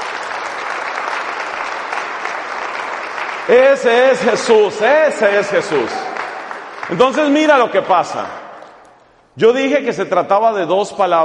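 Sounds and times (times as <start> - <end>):
audience applause: 0.0 - 8.1
speech: 3.5 - 6.0, 6.9 - 8.4, 9.4 - 11.2.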